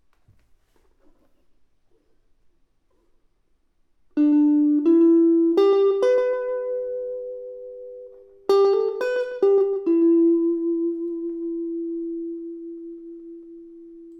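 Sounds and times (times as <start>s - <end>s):
electric guitar: 4.2s - 14.1s.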